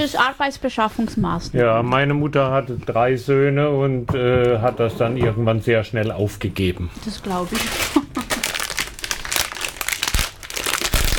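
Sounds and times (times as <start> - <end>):
speech: 0.0 - 8.1
underwear crinkling: 7.0 - 11.1.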